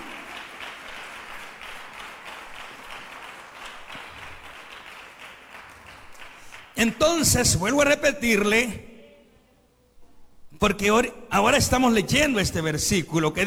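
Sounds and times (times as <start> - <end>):
audience applause: 0.0 - 6.8
speech: 6.8 - 8.9, 10.6 - 13.4.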